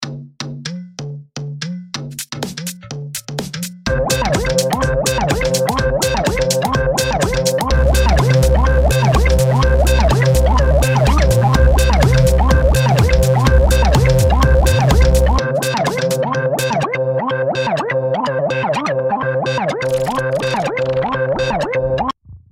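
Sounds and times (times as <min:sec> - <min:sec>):
deep house music: 0:03.9 - 0:22.1.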